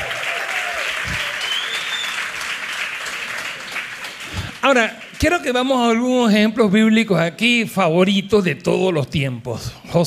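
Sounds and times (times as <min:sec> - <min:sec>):
audience applauding: 0:00.0 - 0:06.0
speech: 0:04.6 - 0:10.0.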